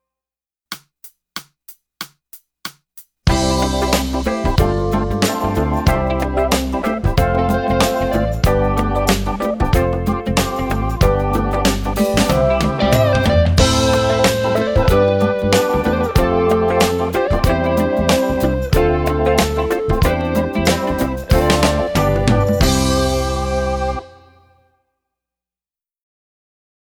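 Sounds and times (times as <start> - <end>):
concert study music: 3.3 - 24.4.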